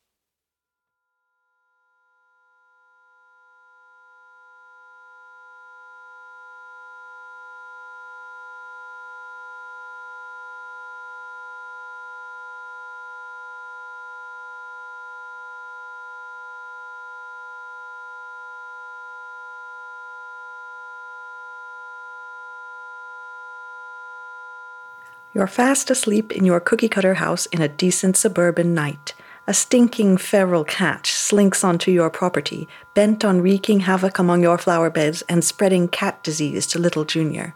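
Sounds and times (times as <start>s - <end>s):
steady electronic tones from an ultrasonic animal repeller: 25.0s - 37.5s
speech: 25.3s - 37.5s.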